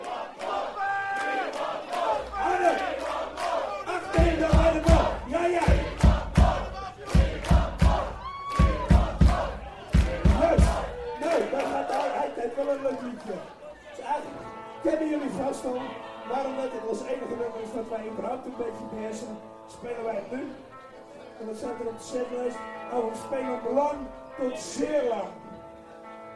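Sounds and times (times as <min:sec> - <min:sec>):
crowd chanting: 0:00.0 - 0:18.2
speech: 0:21.4 - 0:25.4.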